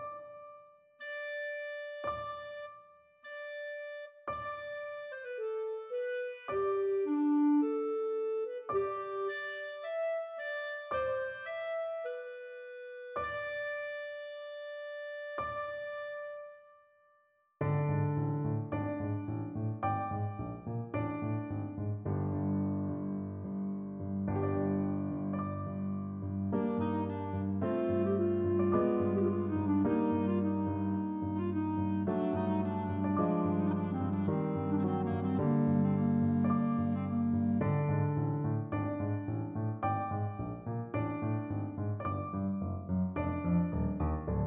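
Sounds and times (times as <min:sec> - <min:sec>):
clarinet: 0:00.7 - 0:44.4.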